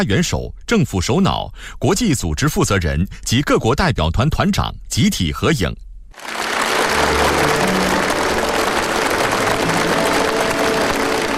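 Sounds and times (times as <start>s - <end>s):
speech: 0.0s - 6.4s
large crowd applause: 6.2s - 11.3s.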